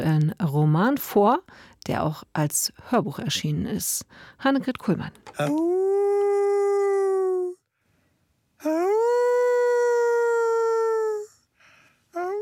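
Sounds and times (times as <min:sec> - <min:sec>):
speech: 0:00.0 - 0:06.0, 0:08.6 - 0:09.2
man imitating a wolf howl as an audiobook character: 0:05.4 - 0:07.6, 0:08.6 - 0:11.4.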